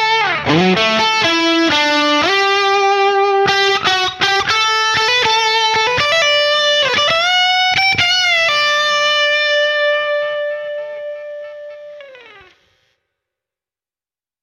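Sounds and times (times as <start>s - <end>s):
guitar through Yamaha Rev7 vintage digital percussion plate reverb: 0.0s - 12.8s.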